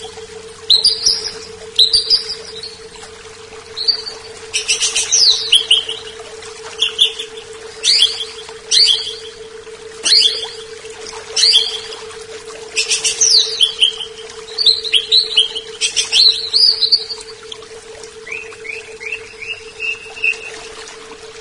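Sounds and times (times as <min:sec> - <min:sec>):
leafbird singing varied phrases: 0:00.7 - 0:02.8, 0:03.7 - 0:06.2, 0:06.8 - 0:09.4, 0:10.0 - 0:10.7, 0:11.4 - 0:12.0, 0:12.8 - 0:17.4, 0:18.2 - 0:20.5.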